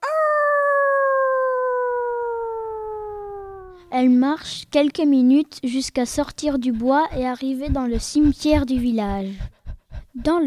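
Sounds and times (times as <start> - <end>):
golden-furred she-wolf howling at the moon: 0.1 - 3.9
speech: 3.9 - 9.6, 10.2 - 10.4.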